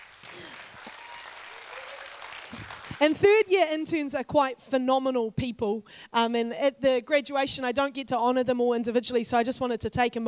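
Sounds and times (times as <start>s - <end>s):
audience applause: 0.0s - 3.2s
speech: 2.5s - 10.2s.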